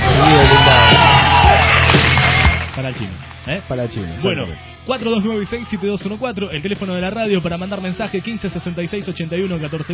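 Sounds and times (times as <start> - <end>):
crowd cheering and whooping: 0.0 - 3.5
speech: 0.3 - 1.3, 2.8 - 9.9
applause: 0.7 - 3.6.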